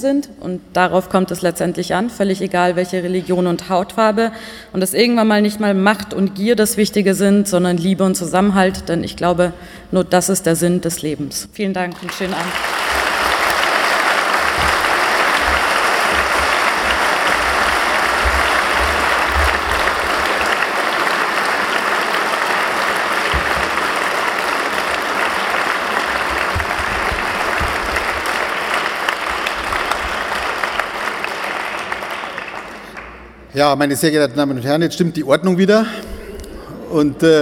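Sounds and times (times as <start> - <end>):
speech: 0.0 - 13.0, 33.6 - 36.1, 36.9 - 37.4
audience applause: 11.9 - 33.4.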